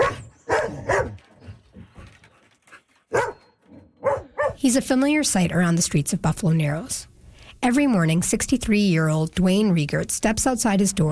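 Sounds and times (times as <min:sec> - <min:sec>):
dog barking: 0:00.0 - 0:01.2, 0:03.1 - 0:03.4, 0:04.0 - 0:04.6
speech: 0:04.6 - 0:11.1.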